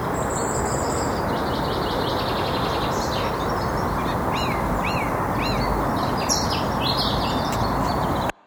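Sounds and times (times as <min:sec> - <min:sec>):
thrush singing: 0:00.0 - 0:08.3.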